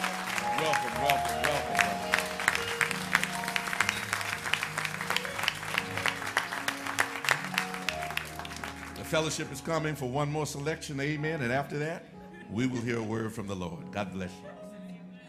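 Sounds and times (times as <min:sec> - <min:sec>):
audience applause for a speaker: 0:00.0 - 0:09.6
sustained organ-like chords: 0:00.0 - 0:12.9
speech: 0:00.6 - 0:01.9, 0:09.1 - 0:14.5.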